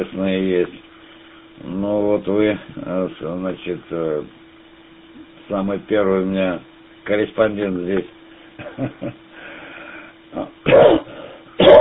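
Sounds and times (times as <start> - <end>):
speech: 0.0 - 0.8, 1.6 - 4.4, 5.5 - 8.2, 8.8 - 9.2
smoker coughing after a cigarette: 10.4 - 11.7.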